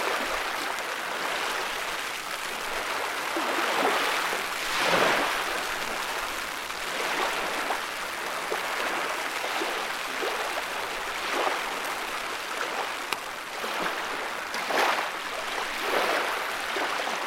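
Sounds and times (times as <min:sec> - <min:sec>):
wide river rushing: 0:00.0 - 0:17.2.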